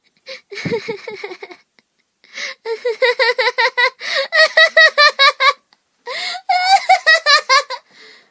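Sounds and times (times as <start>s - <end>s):
person laughing yandere-style: 0.3s - 1.7s, 2.7s - 7.9s.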